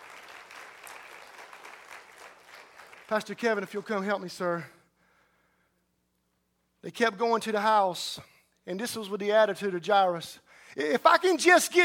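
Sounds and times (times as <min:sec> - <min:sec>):
audience clapping: 0:00.0 - 0:04.2
speech: 0:03.1 - 0:04.8, 0:06.9 - 0:11.8.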